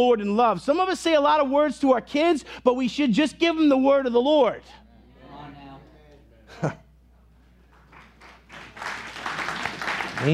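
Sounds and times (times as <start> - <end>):
speech: 0.0 - 4.8, 6.5 - 6.8
audience clapping: 7.6 - 10.3.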